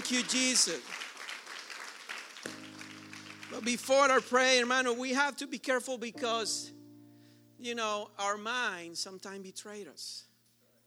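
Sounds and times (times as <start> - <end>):
crowd clapping: 0.0 - 4.8
speech: 0.1 - 1.1, 3.5 - 6.8, 7.6 - 10.3
sustained organ-like chord: 2.4 - 5.2, 6.1 - 9.1.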